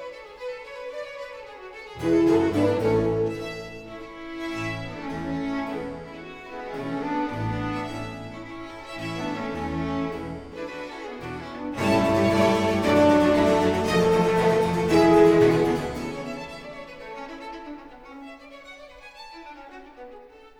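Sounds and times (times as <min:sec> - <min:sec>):
keyboard concerto allegro: 0:02.0 - 0:17.5.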